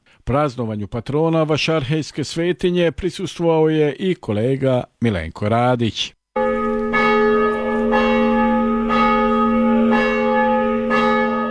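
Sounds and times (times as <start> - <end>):
speech: 0.3 - 6.2
church bell of the Nativity of the Mother of God church ringing: 6.4 - 11.4.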